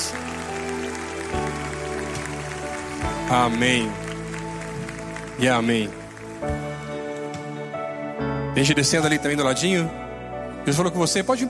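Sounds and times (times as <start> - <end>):
audience applause: 0.0 - 7.6
speech: 3.3 - 4.0, 5.4 - 6.7, 8.6 - 10.0, 10.6 - 11.4.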